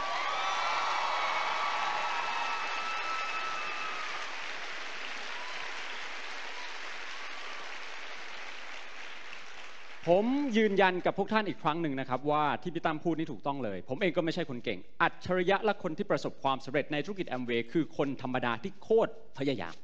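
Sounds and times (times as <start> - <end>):
faint cheers: 0.0 - 7.9
large crowd applauding loudly: 0.0 - 10.8
speech: 10.0 - 19.8.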